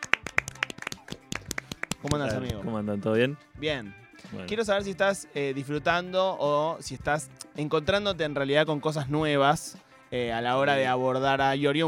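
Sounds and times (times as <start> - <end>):
applause: 0.0 - 2.6
speech: 2.0 - 11.8.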